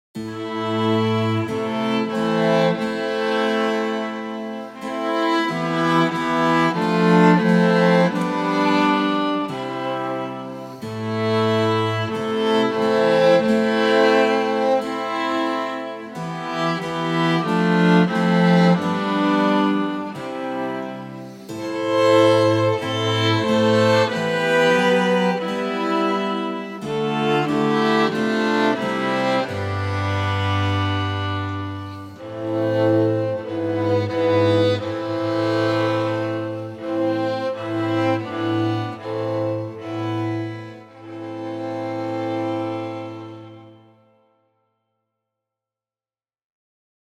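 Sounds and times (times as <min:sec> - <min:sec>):
strings: 0:00.2 - 0:44.2.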